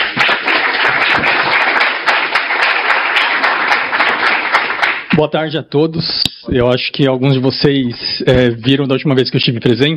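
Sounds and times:
audience applause: 0:00.0 - 0:05.2
speech: 0:05.2 - 0:09.9.

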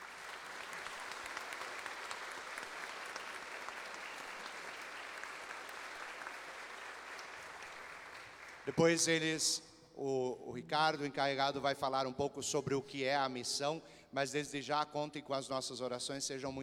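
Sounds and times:
audience applause: 0:00.0 - 0:08.8
speech: 0:08.7 - 0:16.6.

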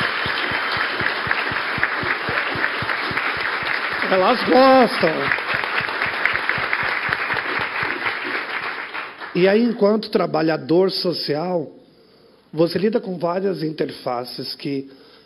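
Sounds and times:
audience applause: 0:00.0 - 0:09.4
speech: 0:04.1 - 0:05.4, 0:09.4 - 0:11.8, 0:12.5 - 0:15.0.

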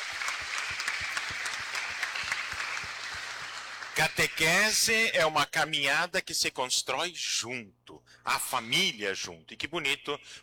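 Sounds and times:
round of applause: 0:00.0 - 0:04.9
speech: 0:04.0 - 0:10.4.

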